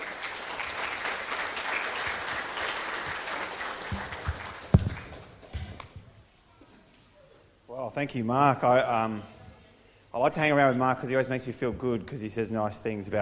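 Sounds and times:
audience applause: 0.0s - 5.5s
speech: 7.9s - 9.4s, 10.2s - 13.2s.

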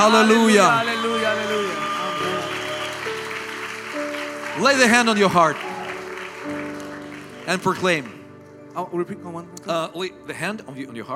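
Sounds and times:
speech: 0.0s - 1.5s, 4.6s - 5.7s, 7.5s - 8.2s, 8.8s - 11.1s
audience applause: 0.0s - 8.3s.

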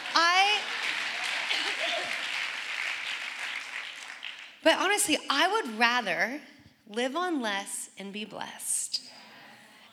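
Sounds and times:
audience applause: 0.0s - 4.6s
speech: 4.6s - 8.8s.

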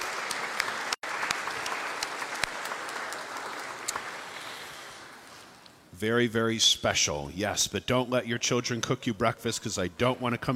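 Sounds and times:
audience applauding for mothers: 0.0s - 5.2s
speech: 6.0s - 10.5s.

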